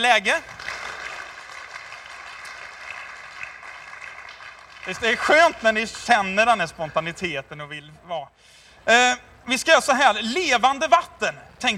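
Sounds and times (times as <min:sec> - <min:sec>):
speech: 0:00.1 - 0:00.6, 0:04.9 - 0:11.7
crowd applause: 0:00.4 - 0:05.5.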